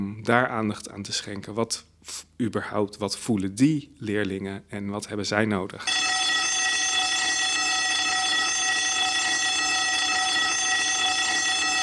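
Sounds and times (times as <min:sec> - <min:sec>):
speech: 0:00.1 - 0:06.1
school bell ringing: 0:05.8 - 0:11.8.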